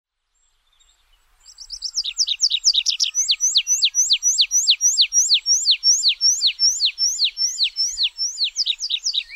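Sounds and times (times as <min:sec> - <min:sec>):
Tree pipit singing a rhythmic trill: 0:02.0 - 0:09.2.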